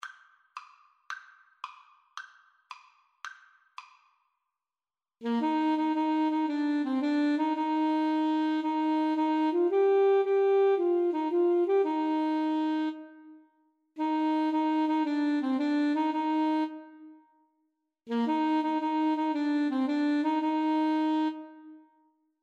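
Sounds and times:
saxophone playing a nursery rhyme: 5.2 - 17.2, 18.1 - 21.9.

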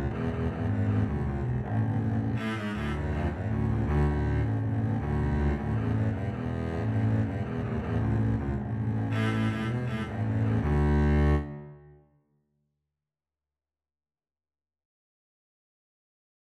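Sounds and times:
two double basses playing a duet: 0.0 - 11.9.

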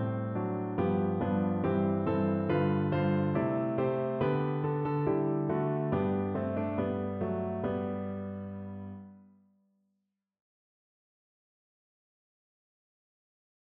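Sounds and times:
piano piece: 0.0 - 9.2.

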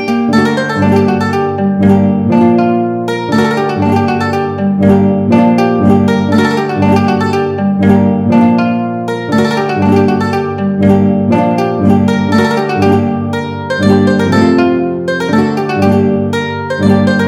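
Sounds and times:
mandolin and guitar duet: 0.0 - 17.2.

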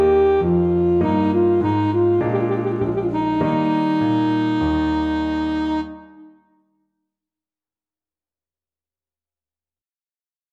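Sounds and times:
saxophone: 0.0 - 6.5
trumpet piece: 0.0 - 6.6.

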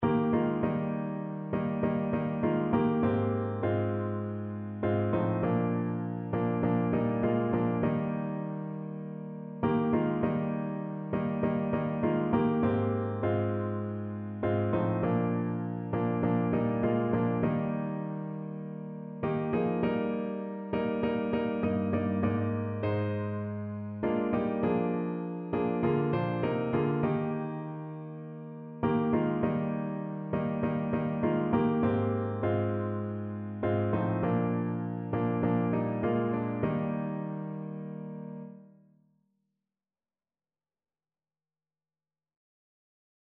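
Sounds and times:
piano: 0.0 - 38.9.

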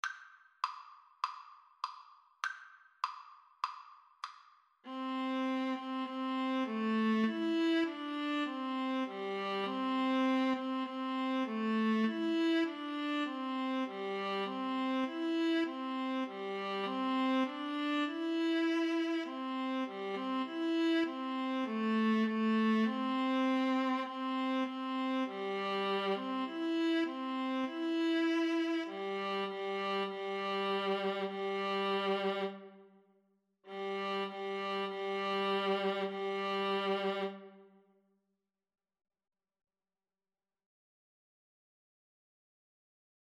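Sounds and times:
viola duet: 4.9 - 32.8, 33.7 - 37.7.

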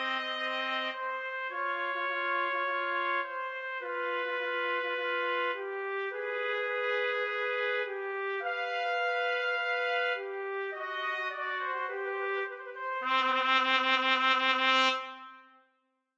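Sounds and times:
trumpet trio playing classical piece: 0.0 - 15.5.

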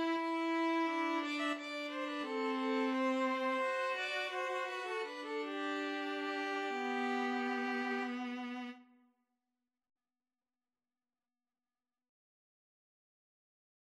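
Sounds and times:
string trio playing: 0.0 - 8.8.

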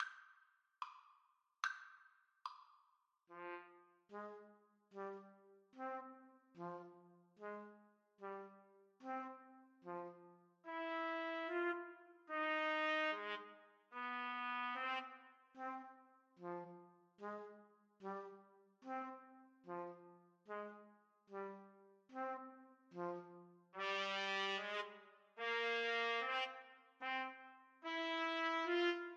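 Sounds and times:
trumpet duet: 3.3 - 29.1.

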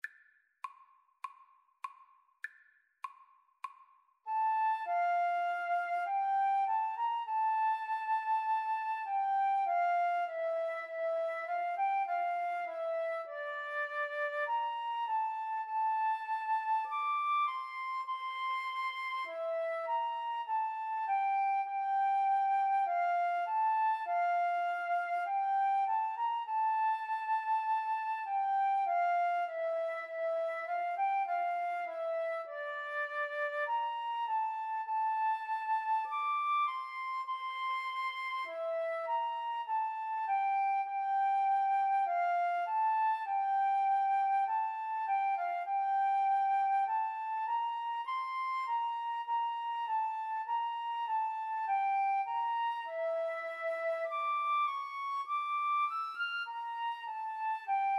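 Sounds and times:
flute duet: 4.3 - 57.9.

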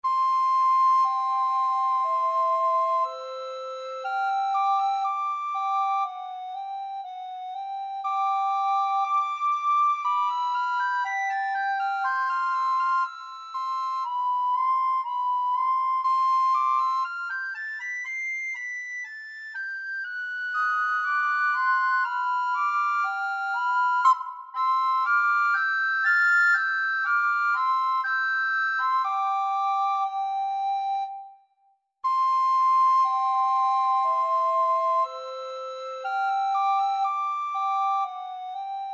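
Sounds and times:
recorder duet: 0.0 - 18.6, 20.0 - 31.3, 32.0 - 38.9.

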